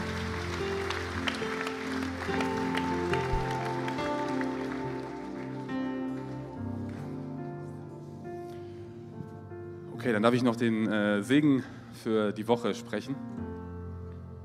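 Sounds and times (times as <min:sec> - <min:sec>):
audience applauding: 0:00.0 - 0:07.2
speech: 0:10.0 - 0:13.3.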